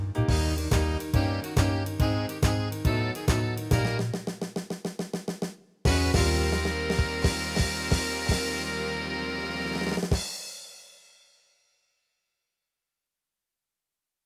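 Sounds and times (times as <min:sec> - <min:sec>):
backing music: 0:00.0 - 0:04.4, 0:05.9 - 0:10.4.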